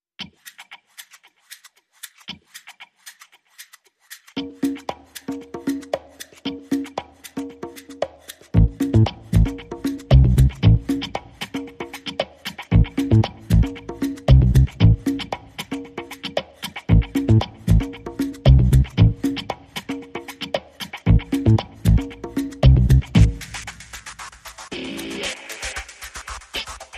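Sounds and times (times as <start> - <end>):
percussion: 0.2 - 26.9
bass: 8.6 - 11.5, 12.7 - 15.6, 16.9 - 19.6, 21.1 - 23.6.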